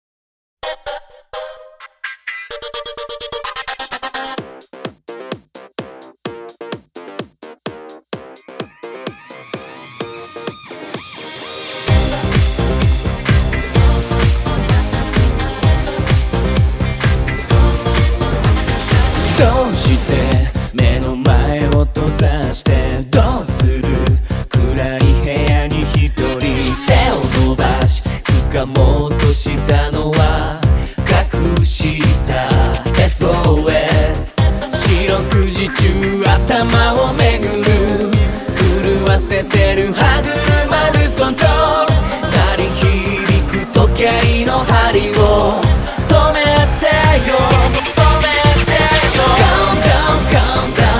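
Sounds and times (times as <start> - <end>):
male vocalists singing: 11.8 - 50.9.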